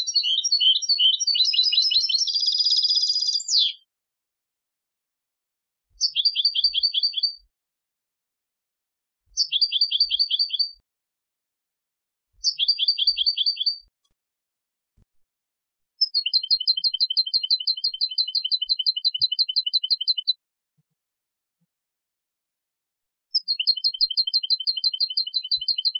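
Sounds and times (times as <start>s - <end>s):
European goldfinch Carduelis carduelis singing with twittering bursts and trills: 0.0s - 3.8s, 6.0s - 7.4s, 9.4s - 10.8s, 12.4s - 13.9s, 16.0s - 20.4s, 23.3s - 25.9s.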